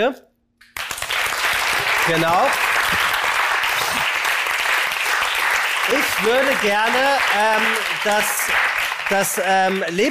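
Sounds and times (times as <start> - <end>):
speech: 0.0 - 0.3, 2.1 - 3.1, 5.9 - 10.0
audience applause: 0.8 - 10.0.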